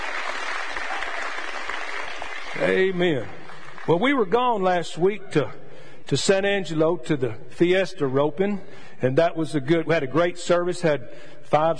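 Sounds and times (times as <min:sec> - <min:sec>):
congregation applauding first-time visitors during a church service: 0:00.0 - 0:04.4
speech: 0:02.6 - 0:11.7.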